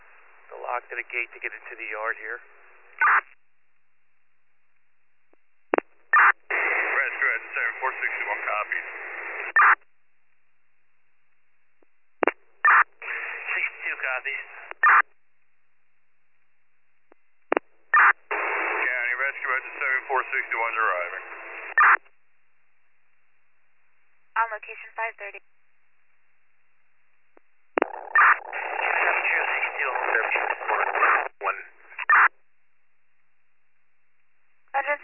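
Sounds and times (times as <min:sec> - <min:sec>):
radio transmission static: 0:00.2 - 0:02.4, 0:03.0 - 0:03.4, 0:05.8 - 0:09.8, 0:12.2 - 0:15.1, 0:17.5 - 0:22.1, 0:24.4 - 0:25.4, 0:27.8 - 0:32.3, 0:34.8 - 0:35.0
speech: 0:00.8 - 0:03.4, 0:24.7 - 0:25.5.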